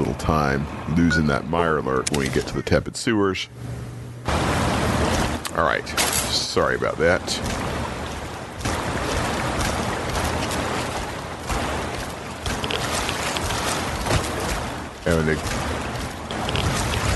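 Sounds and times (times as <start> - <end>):
speech: 0.3 - 4.4, 5.6 - 7.7, 15.1 - 15.7
video game character splashing through a river: 7.2 - 17.1.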